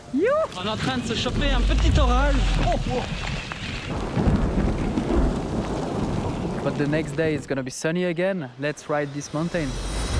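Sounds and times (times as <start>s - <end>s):
steady rain: 0.0s - 10.1s
speech: 0.1s - 4.3s, 6.6s - 10.0s
deep thunder rolling and rumbling: 0.5s - 7.7s.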